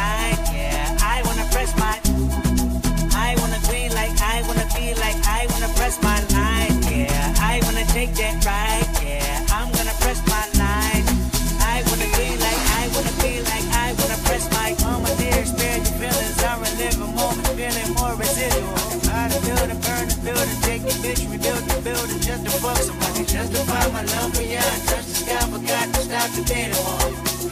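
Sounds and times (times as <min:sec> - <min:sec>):
whistle: 0:00.0 - 0:03.9, 0:10.5 - 0:27.5
amapiano beat: 0:00.0 - 0:27.5.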